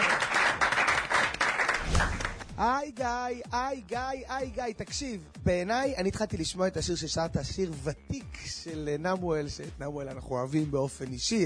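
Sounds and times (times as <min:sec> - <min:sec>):
audience applause: 0:00.0 - 0:02.4
speech: 0:02.6 - 0:11.4.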